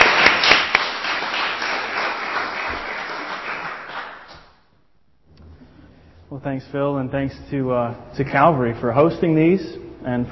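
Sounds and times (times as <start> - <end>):
audience applause welcoming a speaker: 0.0 - 4.3
speech: 6.4 - 10.3.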